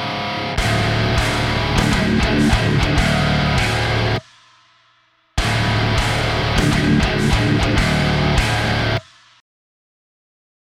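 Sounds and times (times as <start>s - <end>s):
band playing a riff: 0.1s - 4.2s, 5.4s - 9.0s.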